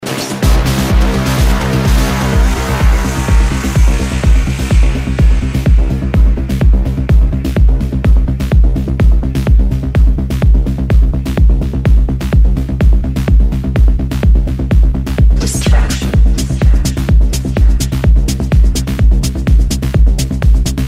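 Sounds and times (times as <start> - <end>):
progressive techno house music: 0.0 - 20.8.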